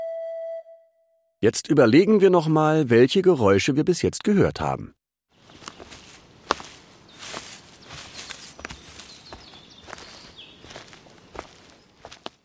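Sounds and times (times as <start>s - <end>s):
speech: 1.4s - 5.0s
footsteps rustling leaves in forest: 5.3s - 12.4s.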